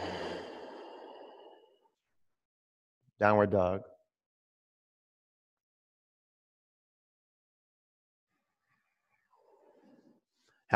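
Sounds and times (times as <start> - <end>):
long breathy exhale during a yoga session: 0.0 - 1.8
speech: 3.2 - 3.9.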